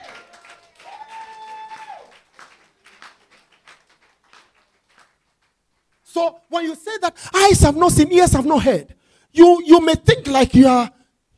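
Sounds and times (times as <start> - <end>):
audience clapping: 0.0 - 6.1
speech: 6.2 - 11.0.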